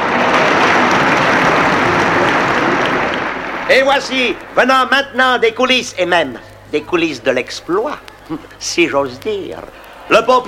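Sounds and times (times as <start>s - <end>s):
audience applause: 0.0s - 7.3s
speech: 3.7s - 10.4s.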